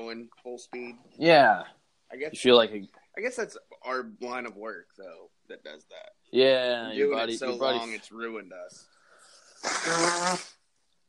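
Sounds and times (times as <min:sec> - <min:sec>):
speech: 0:00.1 - 0:08.9, 0:09.6 - 0:10.6
nose blowing: 0:09.2 - 0:10.6.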